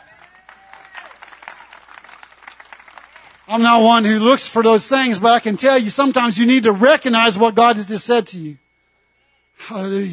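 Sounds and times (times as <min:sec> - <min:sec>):
audience applause: 0:00.0 - 0:03.6
speech: 0:03.5 - 0:08.6, 0:09.6 - 0:10.1.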